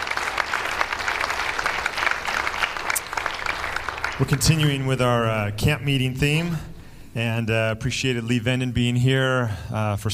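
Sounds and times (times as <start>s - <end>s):
audience clapping: 0.0s - 5.3s
speech: 4.2s - 10.1s.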